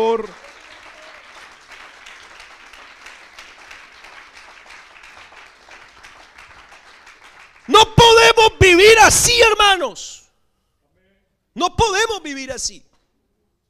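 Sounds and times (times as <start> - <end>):
speech: 0.0 - 0.5, 8.8 - 10.2, 11.6 - 12.9
audience applause: 0.0 - 7.8.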